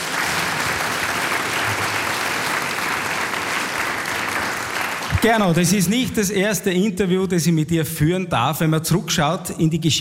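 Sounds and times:
audience applause: 0.0s - 5.8s
speech: 5.2s - 9.9s.

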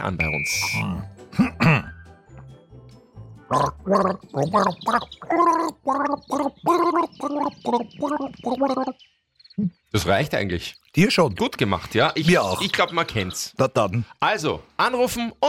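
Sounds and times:
speech: 0.0s - 1.9s, 3.5s - 15.4s
person gargling water: 3.5s - 9.0s.

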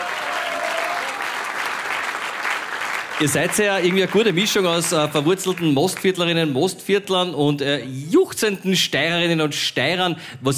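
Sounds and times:
audience applause: 0.0s - 6.1s
speech: 3.2s - 10.5s.

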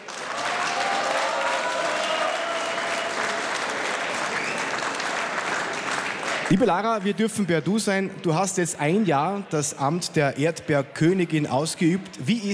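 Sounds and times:
audience applause: 0.0s - 7.2s
speech: 6.5s - 12.5s.

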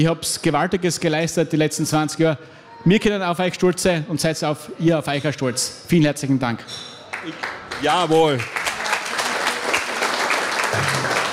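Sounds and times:
speech: 0.0s - 8.6s, 10.8s - 11.2s
audience applause: 7.1s - 11.3s.

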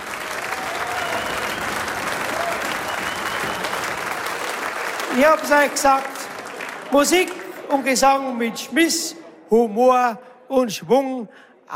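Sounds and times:
loud sustained audience applause: 0.0s - 8.5s
speech: 5.2s - 6.1s, 6.9s - 11.7s.

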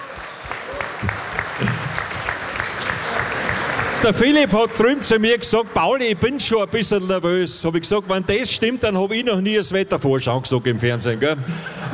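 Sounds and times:
big audience applause: 0.0s - 9.2s
speech: 4.0s - 11.9s.

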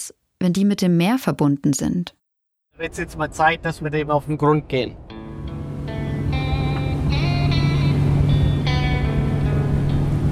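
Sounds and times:
speech: 0.0s - 2.2s, 2.8s - 5.2s
motorboat engine roaring across a lagoon: 5.3s - 10.3s.

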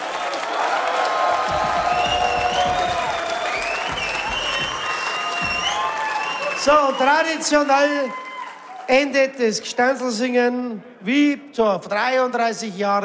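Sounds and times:
audience applause and cheering: 0.0s - 9.6s
speech: 6.6s - 8.2s, 8.9s - 13.0s.

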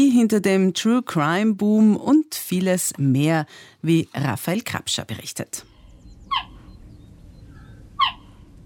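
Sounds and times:
speech: 0.0s - 5.7s
cheetah chirping: 5.8s - 8.5s.

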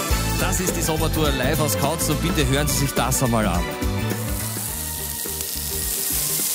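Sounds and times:
speech: 0.4s - 4.1s
pork chops sizzling on a grill: 4.0s - 6.5s.

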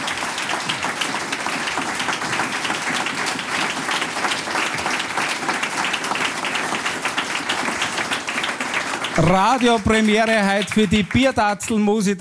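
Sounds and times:
audience applause: 0.0s - 11.8s
speech: 9.2s - 12.2s.

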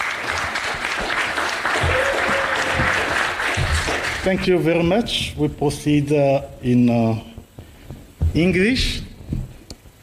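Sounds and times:
applause: 0.0s - 4.6s
speech: 4.2s - 7.3s, 8.4s - 9.0s.

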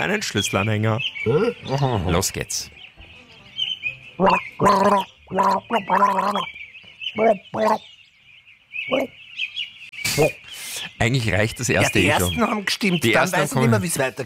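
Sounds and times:
speech: 0.0s - 2.8s, 4.2s - 6.6s, 7.2s - 7.9s, 8.8s - 9.5s, 10.2s - 10.4s, 11.0s - 14.2s
gargling: 1.2s - 2.1s, 4.2s - 6.5s.

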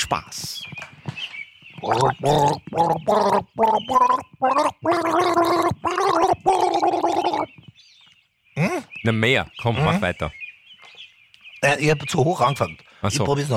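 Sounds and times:
speech: 0.1s - 0.8s, 1.8s - 5.6s, 9.0s - 10.4s, 11.6s - 13.5s
person gargling a tune with flower-vase water: 1.8s - 7.5s.

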